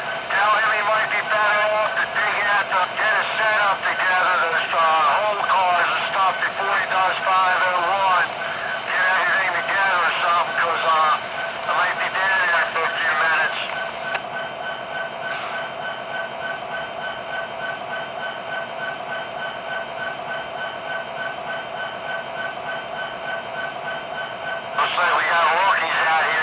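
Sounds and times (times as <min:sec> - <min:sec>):
SD70ACE and electric trains: 0:00.0 - 0:26.4.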